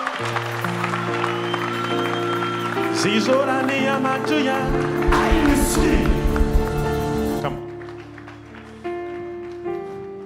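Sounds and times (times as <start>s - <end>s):
crowd clapping: 0.0s - 2.9s, 7.6s - 9.6s
speech: 0.2s - 0.7s, 3.0s - 6.4s.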